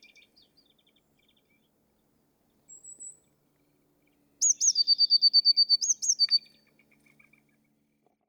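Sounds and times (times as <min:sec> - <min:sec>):
Eurasian blue tit song: 0:00.0 - 0:01.8, 0:02.6 - 0:03.4, 0:04.0 - 0:07.8.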